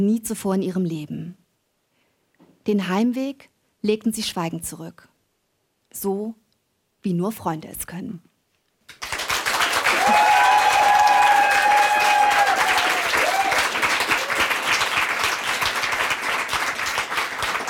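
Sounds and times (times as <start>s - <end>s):
speech: 0.0s - 1.4s, 2.6s - 5.1s, 5.9s - 6.4s, 7.0s - 8.3s
applause from a large live crowd: 8.9s - 17.6s
cheering whistle or voice: 9.9s - 14.6s.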